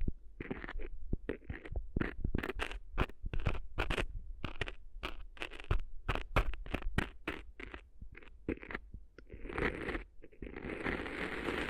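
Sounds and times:
ear-cleaning crackles and scratchy taps: 0.0 - 11.6.

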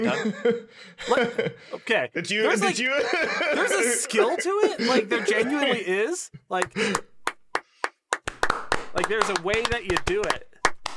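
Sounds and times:
speech: 0.0 - 7.1, 9.0 - 10.5
laughter: 0.0 - 7.2
single hand clap: 6.6 - 10.9.

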